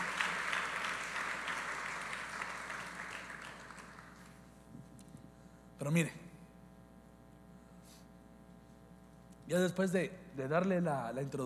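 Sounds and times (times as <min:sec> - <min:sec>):
audience applause: 0:00.0 - 0:04.5
speech: 0:05.8 - 0:06.3, 0:09.5 - 0:11.4.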